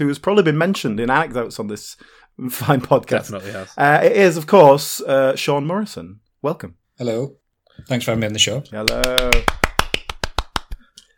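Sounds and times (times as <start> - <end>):
speech: 0.0 - 9.6
person clapping alone: 8.8 - 11.1.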